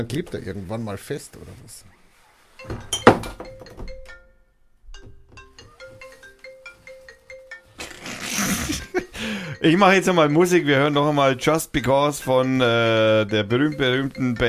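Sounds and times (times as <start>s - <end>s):
speech: 0.0s - 2.0s, 9.2s - 14.4s
crate of beer bottles lifted, clinking: 2.6s - 3.8s.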